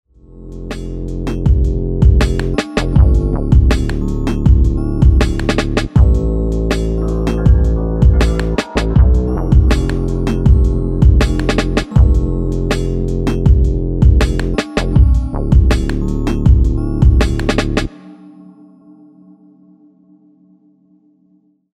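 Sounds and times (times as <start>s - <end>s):
wonky dubstep music: 0.6s - 17.9s.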